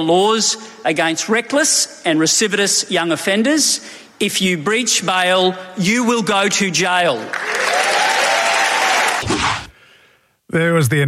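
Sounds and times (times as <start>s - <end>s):
speech: 0.0s - 7.8s, 10.5s - 11.0s
applause from around 500 people at an LNP conference: 7.2s - 9.2s.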